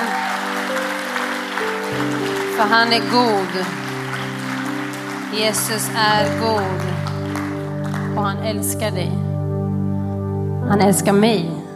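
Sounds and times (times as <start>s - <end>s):
audience applause: 0.0s - 8.8s
sustained keyboard chords: 0.0s - 11.7s
speech: 2.6s - 3.8s, 5.3s - 6.9s, 8.2s - 9.3s, 10.7s - 11.6s.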